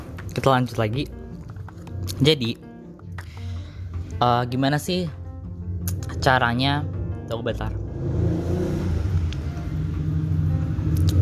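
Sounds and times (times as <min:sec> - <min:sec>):
speech: 0:00.4 - 0:01.2, 0:02.1 - 0:02.6, 0:04.2 - 0:05.2, 0:06.2 - 0:08.3
motorcycle passing by: 0:07.7 - 0:11.2.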